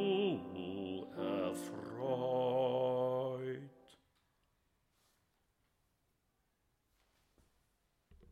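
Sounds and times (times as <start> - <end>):
bass voice singing: 0.0 - 3.9.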